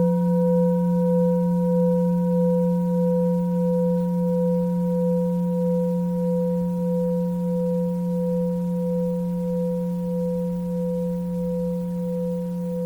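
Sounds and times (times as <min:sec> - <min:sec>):
900g singing bowl: 0:00.0 - 0:12.8.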